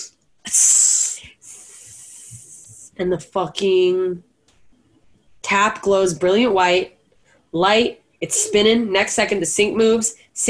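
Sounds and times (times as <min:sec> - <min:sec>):
voice imitating a snake hissing: 0:00.5 - 0:03.0
speech: 0:03.0 - 0:04.3, 0:05.5 - 0:10.4.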